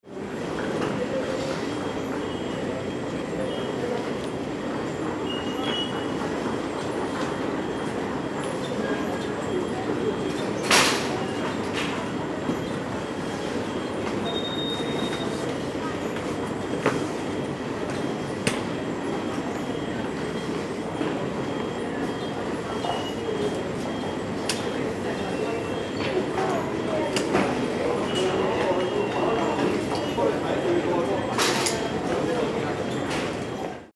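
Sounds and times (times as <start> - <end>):
airport ambience near baggage claim area: 0.1 - 33.9.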